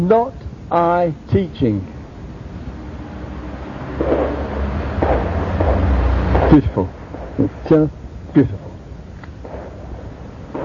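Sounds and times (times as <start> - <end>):
speech: 0.0 - 2.0, 6.5 - 8.7
fireworks booming: 4.0 - 8.8, 9.4 - 10.6.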